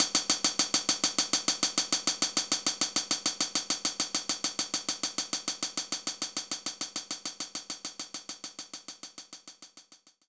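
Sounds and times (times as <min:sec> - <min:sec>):
soft closed hi-hat: 0:00.0 - 0:10.2.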